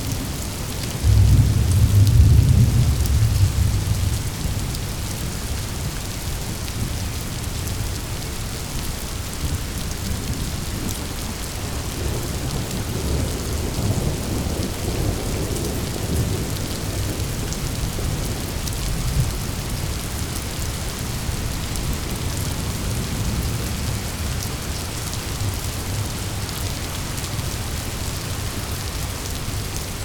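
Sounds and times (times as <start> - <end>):
rain: 0.0 - 30.0
thunder rolling: 1.0 - 4.6.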